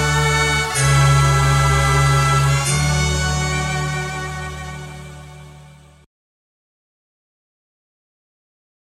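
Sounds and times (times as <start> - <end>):
melodic instrumental music: 0.0 - 6.1.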